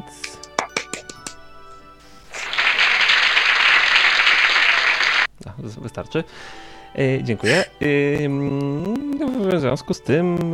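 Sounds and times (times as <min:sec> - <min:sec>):
crowd applause: 0:02.3 - 0:05.3
speech: 0:05.7 - 0:10.5.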